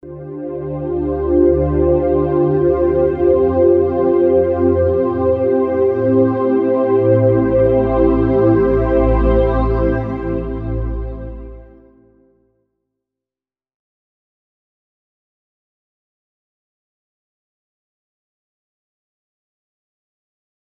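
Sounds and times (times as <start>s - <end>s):
NRG synth pad: 0.0s - 12.1s.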